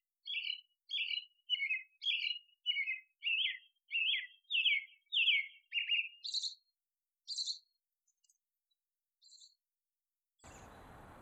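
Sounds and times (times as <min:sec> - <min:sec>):
birds: 0:00.2 - 0:06.7, 0:07.3 - 0:08.4, 0:10.4 - 0:11.2.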